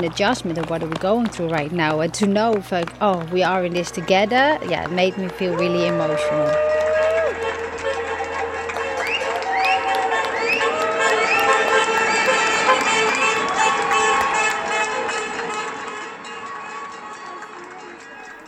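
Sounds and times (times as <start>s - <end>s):
speech: 0.0s - 6.7s
scattered clapping: 0.0s - 18.4s
outdoor neighbourhood crowd cheering: 2.3s - 18.4s
whoops and whistles: 9.0s - 12.4s.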